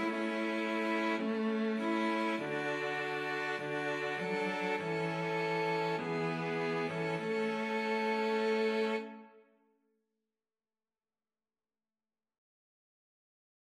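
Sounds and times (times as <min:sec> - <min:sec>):
string trio of two violins and violoncello: 0:00.0 - 0:09.3.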